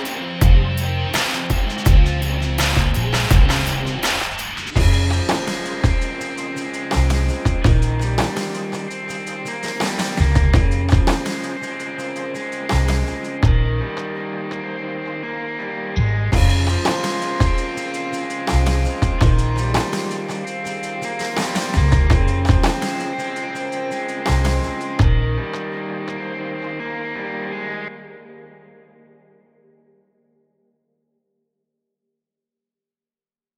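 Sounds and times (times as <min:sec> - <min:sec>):
hip hop rock music: 0:00.0 - 0:14.1, 0:16.4 - 0:26.2.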